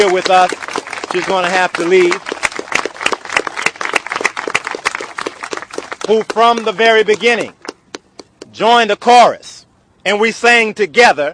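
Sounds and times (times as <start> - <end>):
audience round of applause for the council person: 0.0 - 7.3
speech: 0.1 - 2.3, 6.1 - 7.6, 8.5 - 11.3.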